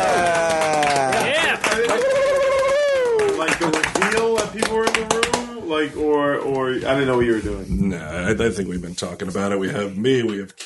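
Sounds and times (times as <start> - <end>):
audience cheering: 0.0 - 4.4
audience clapping: 0.0 - 5.6
speech: 5.8 - 10.6.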